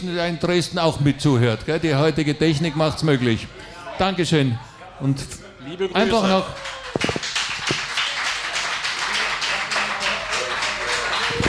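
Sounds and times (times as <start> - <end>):
speech: 0.0 - 7.1
fan club applause: 6.1 - 11.4.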